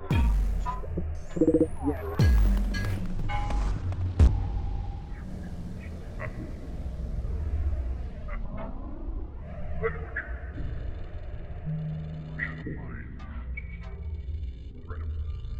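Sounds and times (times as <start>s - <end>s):
constant soundscape: 0.1s - 15.5s.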